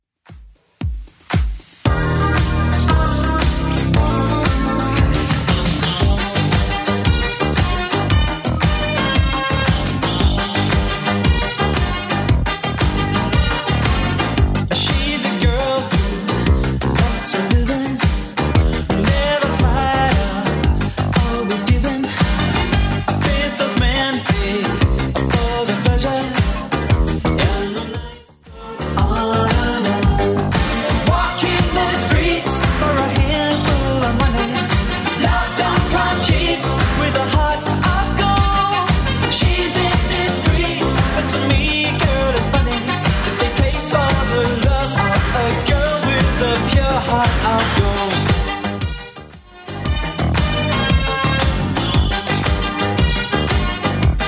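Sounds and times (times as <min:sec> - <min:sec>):
80s club music at 115 bpm: 0:00.3 - 0:54.2.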